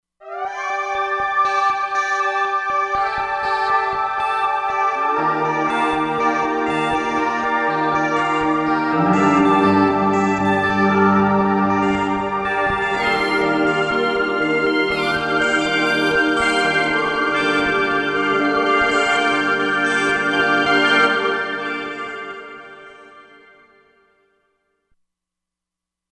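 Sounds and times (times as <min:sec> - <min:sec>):
Roland Fantom XR synthesizer: 0:00.2 - 0:24.0.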